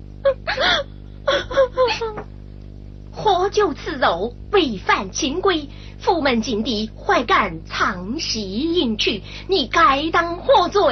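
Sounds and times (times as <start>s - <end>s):
low hum: 0.0s - 10.8s
woman sobbing in a Sichuan opera scene: 0.2s - 2.2s
speech: 3.5s - 10.8s.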